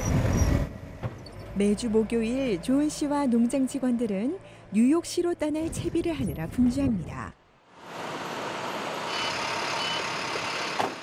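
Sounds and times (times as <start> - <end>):
large truck: 0.0 - 5.0, 7.7 - 11.0
speech: 1.6 - 7.4.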